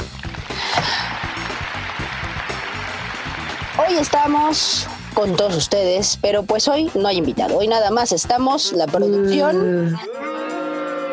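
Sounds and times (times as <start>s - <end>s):
applause: 0.0s - 6.0s
speech: 3.9s - 10.3s.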